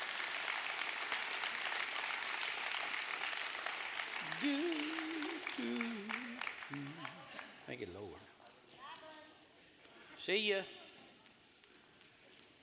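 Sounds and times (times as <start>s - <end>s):
audience applause: 0.0s - 7.7s
speech: 4.4s - 4.8s, 7.7s - 8.3s, 10.2s - 10.8s.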